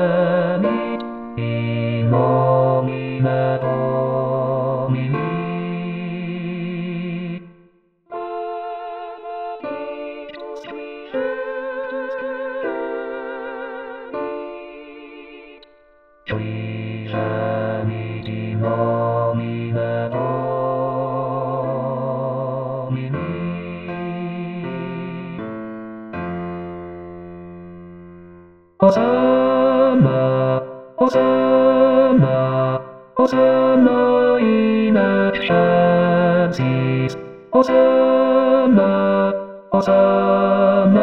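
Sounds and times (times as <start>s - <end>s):
bass voice singing: 0.0s - 7.6s, 16.3s - 25.5s, 28.8s - 41.0s.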